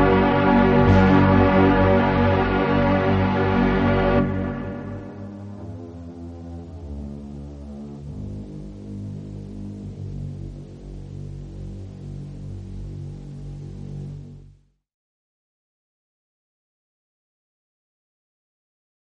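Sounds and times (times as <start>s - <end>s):
Yamaha TX-816 FM synth violin pads: 0.0s - 14.6s.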